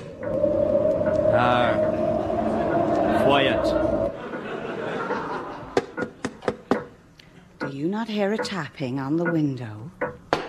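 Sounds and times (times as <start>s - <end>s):
loud bitter wind: 0.0s - 4.2s
laughter: 4.1s - 6.5s
speech: 8.0s - 10.0s.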